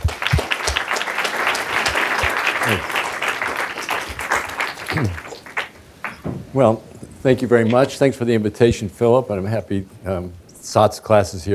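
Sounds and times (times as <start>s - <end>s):
audience applause welcoming a professor before a lecture: 0.0s - 6.3s
speech: 2.7s - 3.0s, 6.6s - 11.5s.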